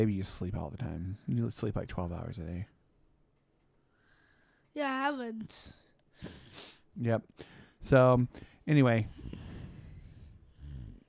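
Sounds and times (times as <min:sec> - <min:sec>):
speech: 0:00.0 - 0:02.8, 0:04.8 - 0:09.4
rough low raspy snoring: 0:09.2 - 0:11.0.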